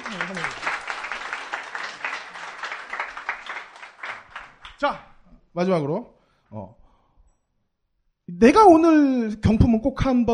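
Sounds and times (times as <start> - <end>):
audience applause: 0.0 - 4.8
speech: 4.8 - 6.8, 8.3 - 10.3.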